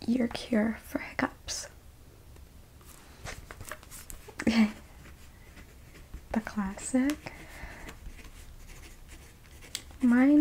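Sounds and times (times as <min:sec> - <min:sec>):
speech: 0:00.1 - 0:01.7, 0:04.4 - 0:04.7, 0:06.5 - 0:07.4, 0:10.0 - 0:10.3
pen or pencil scratching across paper: 0:04.6 - 0:10.3.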